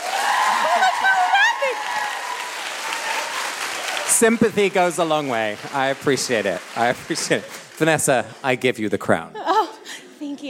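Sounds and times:
scattered audience voices and whoops: 0.0s - 4.0s
audience clapping: 0.0s - 8.8s
speech: 4.2s - 9.4s.

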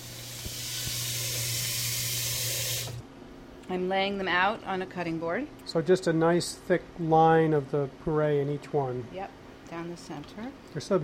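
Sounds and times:
cold tap water rinsing food: 0.0s - 3.0s
speech: 3.7s - 11.0s.

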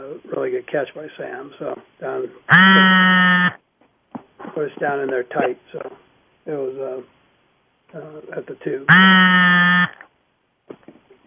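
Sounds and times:
speech: 0.2s - 3.3s, 4.6s - 7.2s, 7.9s - 9.9s
phone vibrating buzz: 2.5s - 3.6s, 8.9s - 10.0s.

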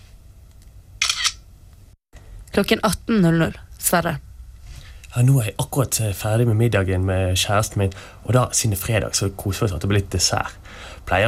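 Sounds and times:
low hum: 0.0s - 11.2s
camera shutter snap for a selfie: 1.0s - 1.4s
speech: 2.6s - 4.3s, 5.1s - 11.2s.

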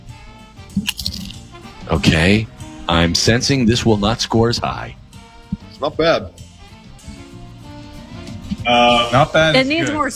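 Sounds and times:
soft wet chewing: 0.7s - 1.5s
crunching chips with dip: 0.8s - 1.4s
speech: 1.9s - 5.0s, 5.8s - 6.4s, 8.7s - 10.1s.

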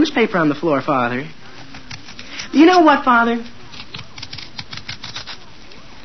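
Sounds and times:
speech: 0.0s - 1.4s, 2.5s - 3.6s
knife scraping potato skins over newspaper: 1.5s - 3.0s, 3.6s - 5.6s.

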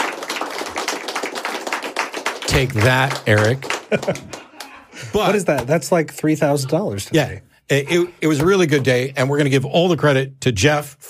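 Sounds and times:
audience clapping: 0.0s - 4.9s
speech: 2.6s - 4.3s, 5.1s - 11.0s
laughter: 3.4s - 5.4s, 7.7s - 9.2s.

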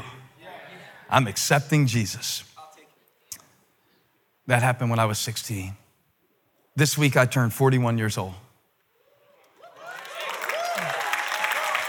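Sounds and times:
speech: 1.1s - 2.5s, 4.5s - 5.8s, 6.8s - 8.4s
audience applause: 9.6s - 11.8s.

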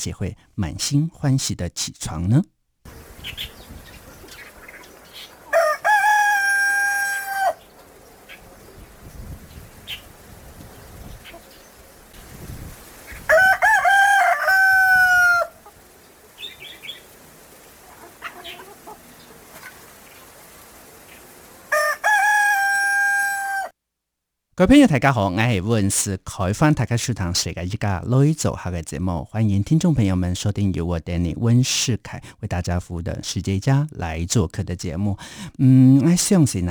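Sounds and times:
speech: 0.0s - 3.6s, 24.6s - 36.6s
rooster crowing: 4.0s - 9.0s, 12.9s - 23.8s.

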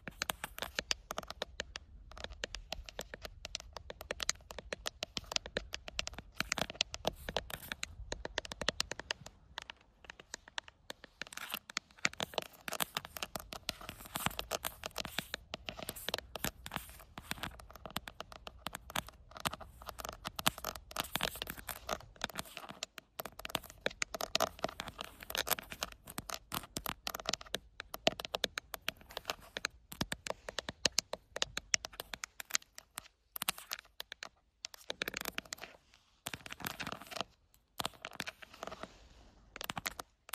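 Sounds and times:
tapping on an outdoor camera: 0.0s - 39.0s.

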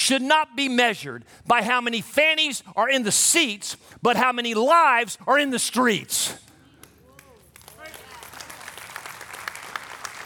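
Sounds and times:
speech: 0.1s - 6.5s
scattered audience applause: 6.8s - 10.2s.

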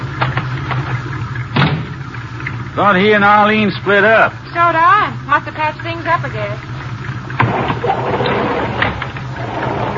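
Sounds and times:
garage doors being opened: 0.2s - 2.6s, 7.1s - 9.9s
speech: 2.8s - 6.7s.

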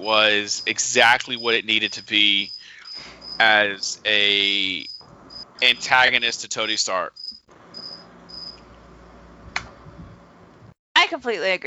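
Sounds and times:
speech: 0.0s - 4.9s, 5.6s - 7.2s, 11.2s - 11.6s
cricket chirping outdoors: 0.0s - 8.6s.

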